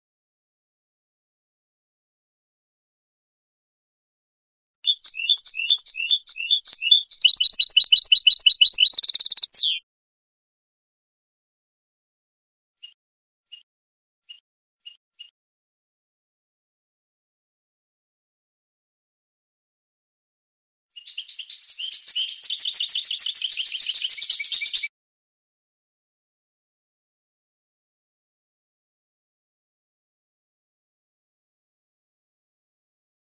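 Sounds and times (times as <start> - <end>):
European goldfinch song: 4.9 - 9.8, 21.0 - 24.9.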